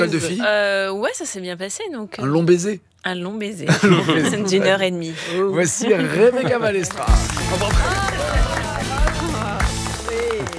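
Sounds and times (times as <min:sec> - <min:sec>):
speech: 0:00.0 - 0:08.1
laughter: 0:03.7 - 0:04.9, 0:05.7 - 0:10.5
audience applause: 0:06.5 - 0:10.5
thumping music beat: 0:07.0 - 0:10.5.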